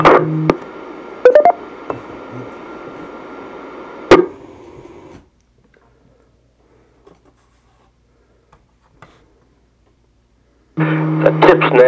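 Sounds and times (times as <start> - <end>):
speech: 0.2 - 0.6
DTMF tones sent to reset an amateur radio repeater: 1.2 - 2.3, 10.8 - 11.8.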